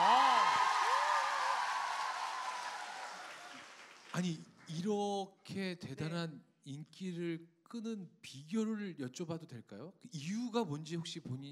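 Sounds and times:
audience cheering and clapping: 0.0 - 4.3
speech: 4.2 - 11.4.

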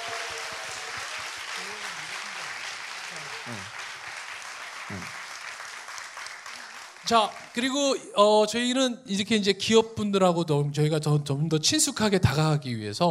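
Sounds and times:
voices cheering and calling out: 0.0 - 3.8
audience applause: 0.0 - 7.7
speech: 3.4 - 3.8, 7.1 - 13.0.

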